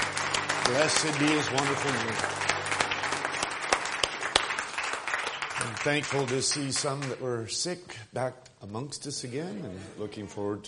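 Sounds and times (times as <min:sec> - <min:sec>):
church congregation clapping hands: 0:00.0 - 0:07.4
speech: 0:00.7 - 0:02.5, 0:05.7 - 0:10.6.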